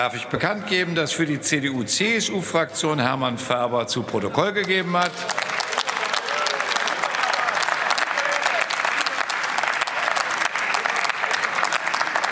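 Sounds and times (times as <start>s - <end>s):
speech: 0.0s - 5.5s
applause in parliament: 4.4s - 12.2s.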